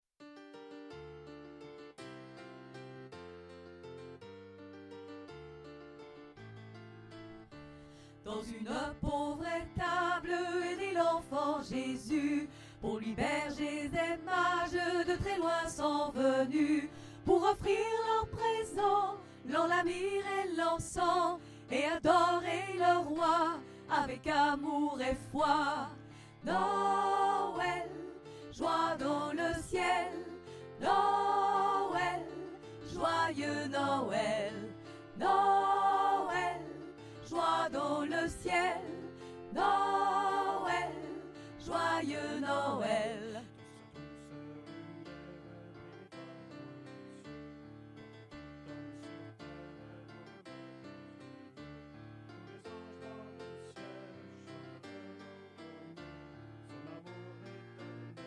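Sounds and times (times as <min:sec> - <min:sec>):
alto voices singing a Christmas carol: 0:08.3 - 0:43.5.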